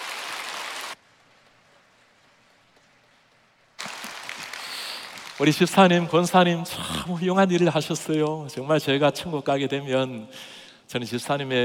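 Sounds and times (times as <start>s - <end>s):
audience applause: 0.0s - 1.0s, 3.8s - 6.4s
speech: 5.4s - 11.6s.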